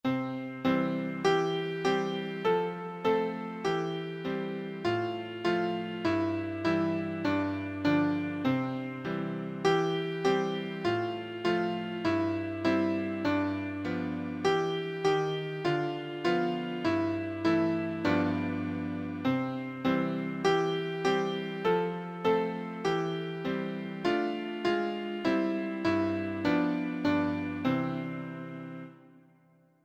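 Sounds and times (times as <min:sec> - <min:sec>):
nursery rhyme melody: 0:00.0 - 0:29.2.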